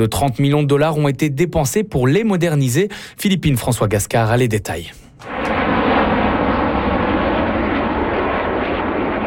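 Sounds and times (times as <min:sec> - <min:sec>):
speech: 0:00.0 - 0:05.3
CT-114 Tutor jet aircraft from the 1960s in flight: 0:05.2 - 0:09.2.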